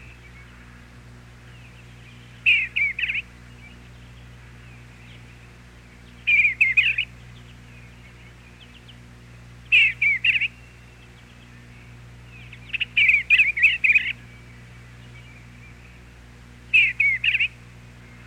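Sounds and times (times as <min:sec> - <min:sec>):
Eastern bluebird singing warbled notes: 0:00.0 - 0:18.2.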